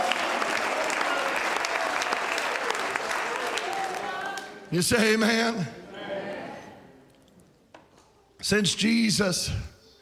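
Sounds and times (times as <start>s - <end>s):
audience clapping: 0.0s - 4.7s
speech: 4.7s - 5.8s, 8.5s - 9.7s.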